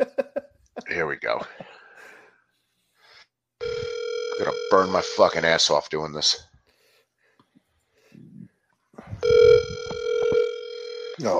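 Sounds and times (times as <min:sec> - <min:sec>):
speech: 0:01.1 - 0:01.6, 0:04.4 - 0:06.5, 0:11.2 - 0:11.3
phone ringback tone: 0:03.6 - 0:05.5, 0:09.2 - 0:11.3.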